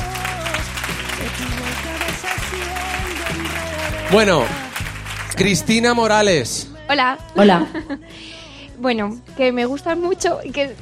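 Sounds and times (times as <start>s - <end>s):
audience applause: 0.0s - 6.1s
speech: 4.1s - 4.6s, 5.4s - 10.8s
laughter: 7.4s - 8.2s.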